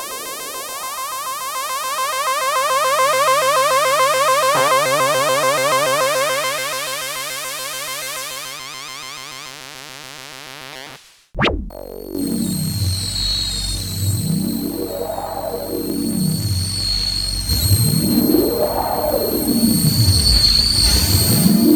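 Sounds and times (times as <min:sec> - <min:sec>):
analog synth sound effects: 0:00.0 - 0:09.9, 0:11.4 - 0:21.7.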